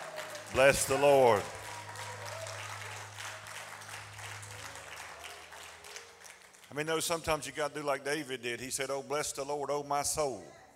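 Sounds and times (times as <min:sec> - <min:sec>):
crowd clapping in praise: 0:00.0 - 0:07.5
speech: 0:00.5 - 0:01.6, 0:06.8 - 0:10.6.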